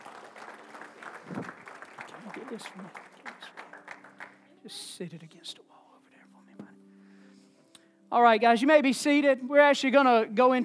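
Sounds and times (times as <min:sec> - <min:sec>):
audience hand clapping: 0:00.0 - 0:04.6
speech: 0:02.5 - 0:03.1, 0:04.6 - 0:05.8, 0:08.1 - 0:10.6.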